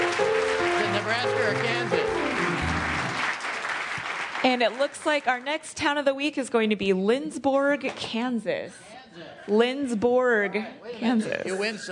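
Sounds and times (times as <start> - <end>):
audience applause: 0.0 - 5.4
speech: 4.4 - 11.9.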